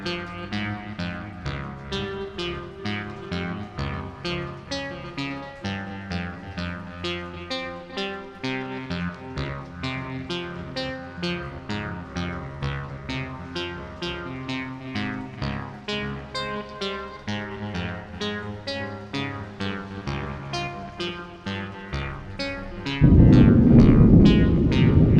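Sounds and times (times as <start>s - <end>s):
distant thunder: 22.8s - 25.1s.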